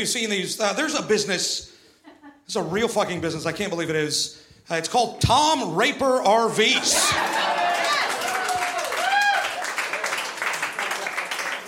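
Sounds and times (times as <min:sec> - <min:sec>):
speech: 0:00.0 - 0:01.7, 0:02.5 - 0:07.6
audience applause: 0:06.8 - 0:11.6
whoops and whistle-like cheer: 0:07.0 - 0:09.7.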